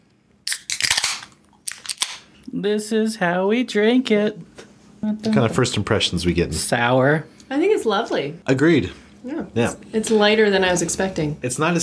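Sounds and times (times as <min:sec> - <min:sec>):
beer cans cracking open: 0:00.4 - 0:02.3
speech: 0:02.5 - 0:11.8.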